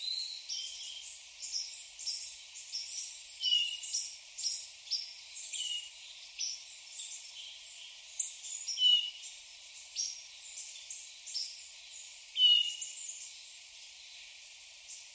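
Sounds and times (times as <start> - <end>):
Hermit thrush Catharus guttatus calls: 0.0 - 9.3, 12.4 - 13.3.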